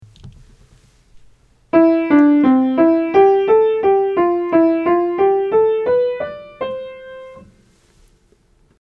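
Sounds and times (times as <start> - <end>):
major scales being played: 1.7 - 7.5.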